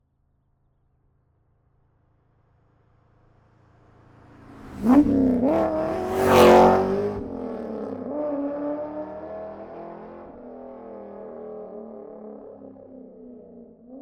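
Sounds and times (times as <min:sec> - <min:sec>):
2004 Corvette C5 driving by: 0:04.0 - 0:11.9.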